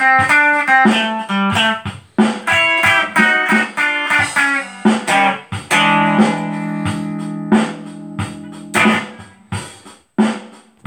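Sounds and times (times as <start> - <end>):
blues solo: 0.0 - 9.5
drum backing track: 0.0 - 10.8.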